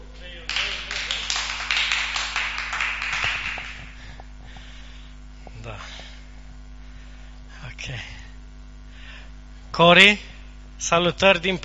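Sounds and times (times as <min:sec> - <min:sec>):
low constant hum: 0:00.0 - 0:11.6
crowd applauding: 0:00.4 - 0:04.0
speech: 0:09.8 - 0:11.6.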